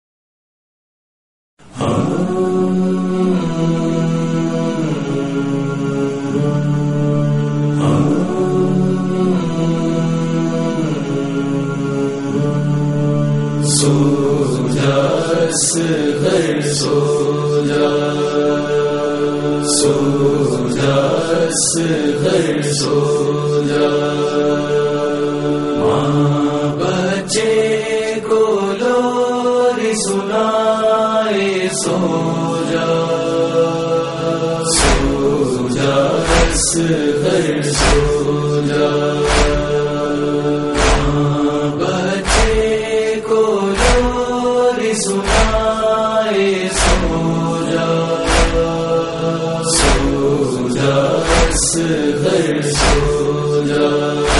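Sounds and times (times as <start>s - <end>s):
noha lament recitation: 1.6s - 54.3s.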